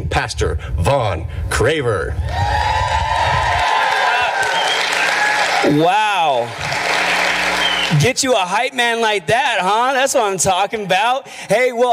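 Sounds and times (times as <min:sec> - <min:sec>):
speech: 0:00.0 - 0:02.9, 0:05.6 - 0:06.7, 0:07.9 - 0:11.9
audience applause: 0:03.1 - 0:08.1.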